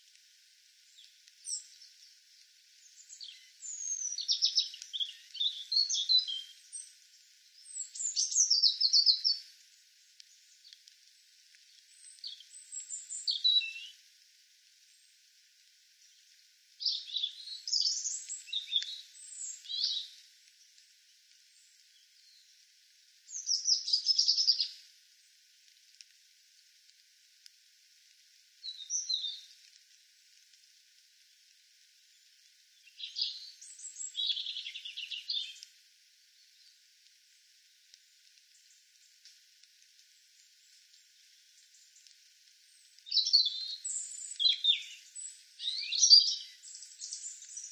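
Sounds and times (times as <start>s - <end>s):
faint steady hiss: 0.0s - 47.6s
European robin singing: 2.8s - 9.4s, 11.9s - 14.0s, 16.8s - 20.2s, 23.3s - 24.8s, 28.6s - 29.5s, 32.8s - 35.6s, 42.7s - 47.6s.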